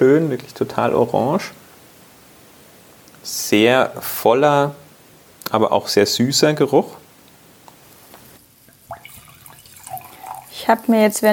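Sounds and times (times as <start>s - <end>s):
speech: 0.0s - 1.6s, 3.2s - 4.8s, 5.5s - 7.0s, 10.6s - 11.3s
quiet steady hiss: 0.0s - 11.3s
wine being poured into a glass: 8.7s - 10.6s.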